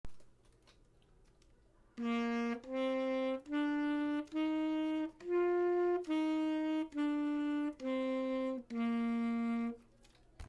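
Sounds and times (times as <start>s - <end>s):
alto saxophone: 2.0s - 9.9s.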